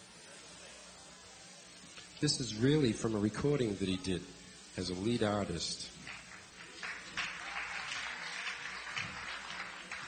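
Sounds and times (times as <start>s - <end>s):
speech: 2.2s - 6.2s
audience applause: 6.0s - 10.0s.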